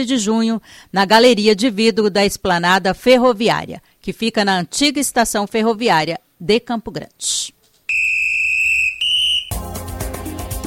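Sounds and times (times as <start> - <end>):
speech: 0.0 - 7.6
whistle blowing: 7.9 - 9.6.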